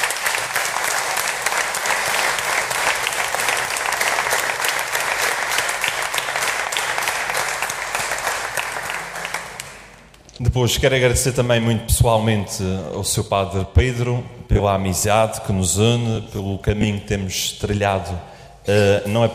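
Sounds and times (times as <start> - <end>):
audience applauding: 0.0 - 10.3
speech: 10.5 - 19.3.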